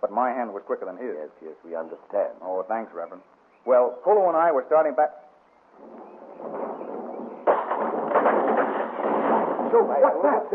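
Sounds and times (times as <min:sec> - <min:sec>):
speech: 0:00.2 - 0:05.2, 0:09.7 - 0:10.5
explosion bursts: 0:05.8 - 0:10.0
aircraft crashing down with loud noise: 0:05.8 - 0:10.4.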